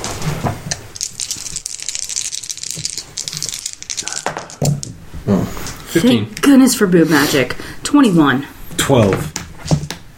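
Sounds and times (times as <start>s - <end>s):
dice being shaken and rolled: 0.7s - 5.0s
speech: 6.0s - 9.4s.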